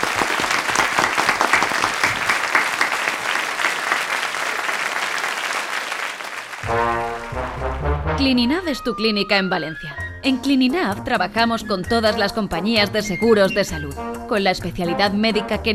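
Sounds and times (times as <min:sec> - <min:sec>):
audience applause: 0:00.0 - 0:07.8
speech: 0:08.2 - 0:15.7.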